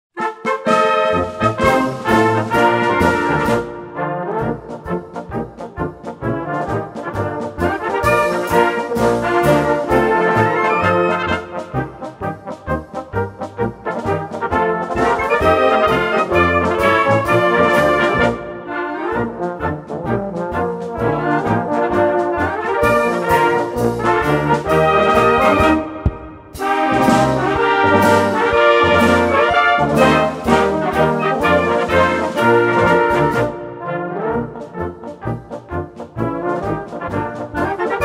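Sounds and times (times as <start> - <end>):
march music: 0.2 - 38.0.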